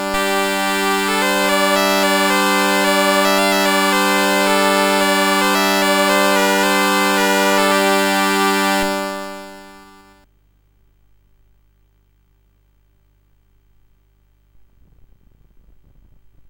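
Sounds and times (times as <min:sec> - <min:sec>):
SID CSG8580R5 chip music: 0:00.0 - 0:10.2.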